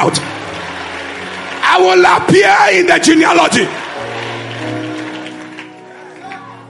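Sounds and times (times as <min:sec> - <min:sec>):
speech: 0:00.0 - 0:00.4, 0:01.8 - 0:03.8
audience clapping hands: 0:00.0 - 0:06.6.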